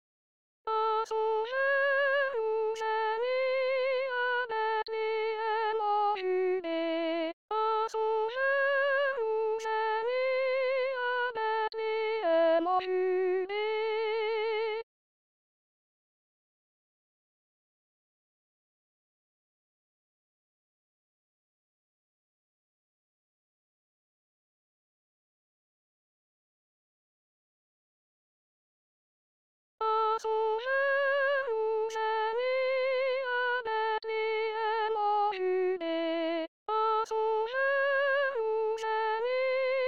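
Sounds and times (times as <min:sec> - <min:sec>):
soprano singing: 0:00.7 - 0:14.8, 0:29.8 - 0:39.8.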